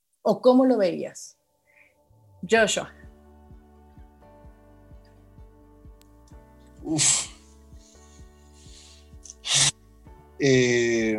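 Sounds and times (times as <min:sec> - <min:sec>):
speech: 0:00.2 - 0:01.4, 0:02.4 - 0:03.0, 0:06.8 - 0:07.3, 0:10.4 - 0:11.1
deep sharp intake of breath: 0:06.8 - 0:09.7.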